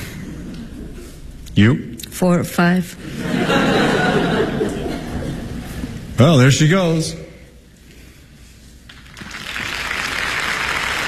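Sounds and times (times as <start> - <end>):
speech: 1.6 - 4.2, 6.2 - 7.2
laughter: 3.0 - 6.0
audience applauding an actor's third act entrance: 8.9 - 11.0.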